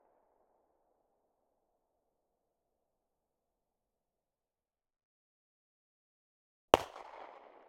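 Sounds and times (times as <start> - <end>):
Glock 17 pistol firing: 6.8 - 7.6.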